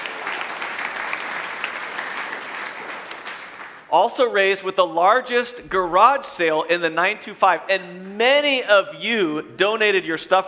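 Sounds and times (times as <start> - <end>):
audience applause: 0.0 - 3.9
speech: 3.9 - 10.4.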